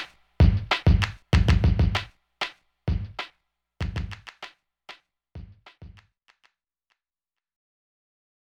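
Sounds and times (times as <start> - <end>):
old school hip hop beat interlude: 0.0 - 2.1, 2.9 - 4.4.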